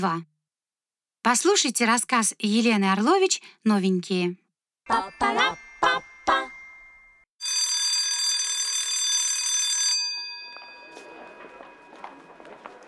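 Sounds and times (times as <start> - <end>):
speech: 0.0 - 0.3, 1.2 - 6.0
school bell ringing: 4.9 - 12.8.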